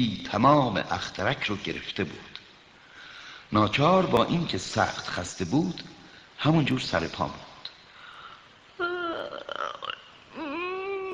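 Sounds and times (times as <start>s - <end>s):
speech: 0.0s - 2.3s, 3.5s - 7.5s
person yawning: 8.8s - 11.1s.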